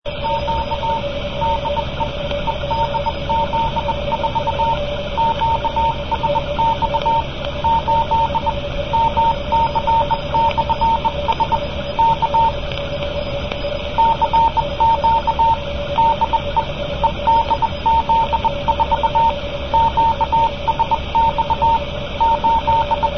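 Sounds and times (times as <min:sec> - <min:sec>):
CW Morse code beeps: 0:00.1 - 0:23.1.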